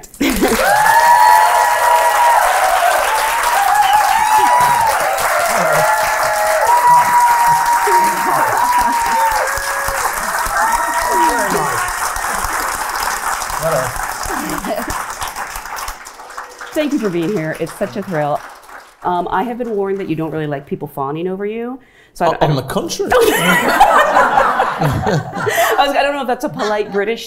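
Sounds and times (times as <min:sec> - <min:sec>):
laughter: 0:00.0 - 0:01.4, 0:03.7 - 0:15.3, 0:23.1 - 0:27.0
audience applause and cheering: 0:00.0 - 0:20.1
speech: 0:17.0 - 0:24.0, 0:24.8 - 0:27.2.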